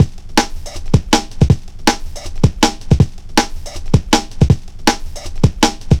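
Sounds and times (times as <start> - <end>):
drum and bass drum loop: 0.0 - 5.9.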